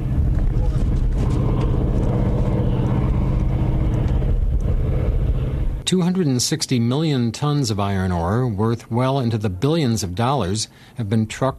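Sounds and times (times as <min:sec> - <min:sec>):
distant roar of ore-hauling trucks in a mine pit: 0:00.0 - 0:05.9
wind buffeting: 0:00.0 - 0:06.2
speech: 0:05.9 - 0:11.5.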